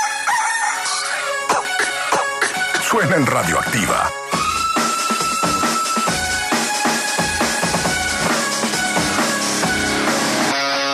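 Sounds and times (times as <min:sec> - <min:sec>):
rooster crowing: 0:00.0 - 0:01.2
dense steady musical bed: 0:00.0 - 0:10.9
speech: 0:02.9 - 0:04.2.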